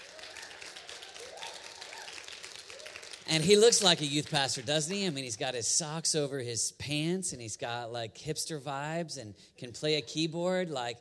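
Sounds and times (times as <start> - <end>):
audience applause: 0.0 - 4.7
speech: 3.3 - 10.9.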